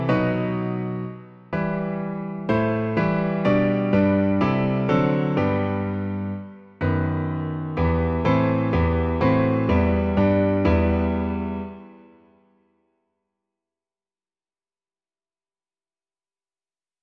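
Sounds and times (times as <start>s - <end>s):
piano version of a piece: 0.0s - 12.4s.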